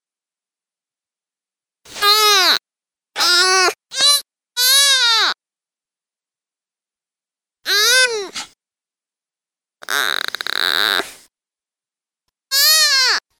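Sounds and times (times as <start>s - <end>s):
deer fawn distress calls, loud harsh bleats: 3.2s - 5.4s, 7.7s - 8.3s, 9.8s - 11.2s, 12.5s - 13.2s.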